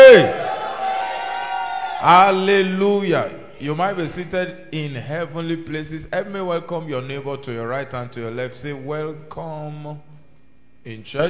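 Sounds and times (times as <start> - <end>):
church congregation shouting glory to the Lord: 0.0 - 2.6
speech: 2.0 - 10.1, 10.8 - 11.2.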